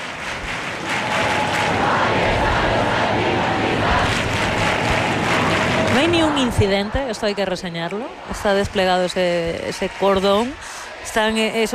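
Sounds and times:
large crowd roar in Puerta del Sol city square: 0:00.7 - 0:09.4
speech: 0:06.0 - 0:11.7.

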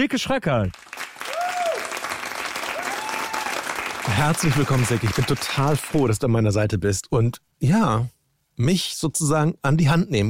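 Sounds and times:
speech: 0:00.0 - 0:01.0, 0:04.1 - 0:10.2
audience applause welcoming two guests onto a German radio show: 0:00.7 - 0:06.2
faint vocal whoops: 0:01.2 - 0:02.0, 0:02.7 - 0:03.6.

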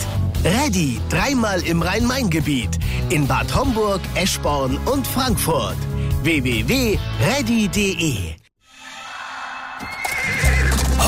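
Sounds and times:
speech: 0:00.4 - 0:08.4
horse neighing: 0:09.1 - 0:11.0.

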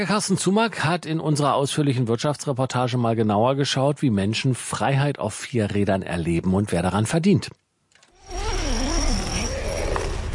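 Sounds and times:
speech: 0:00.0 - 0:07.6
zipper opening a changing tent: 0:08.1 - 0:10.3.

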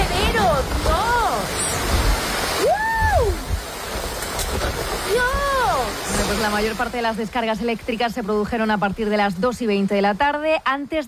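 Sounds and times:
heavy rain: 0:00.0 - 0:09.9
speech: 0:06.4 - 0:11.0.

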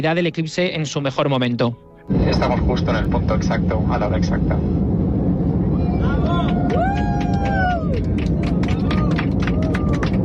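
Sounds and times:
speech: 0:00.0 - 0:04.9
airplane passengers applauding: 0:06.1 - 0:10.2.

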